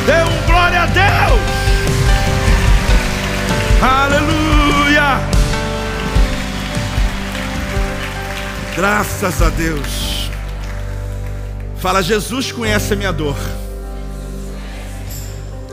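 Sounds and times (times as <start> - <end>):
audience applause: 0.0 - 11.8
speech: 8.8 - 10.2, 11.8 - 13.6.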